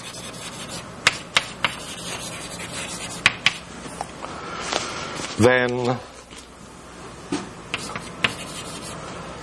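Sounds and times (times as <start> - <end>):
scratching strokes and taps writing down a mathematical formula during a lecture: 1.1 - 3.6, 7.7 - 8.9
speech: 5.4 - 6.2.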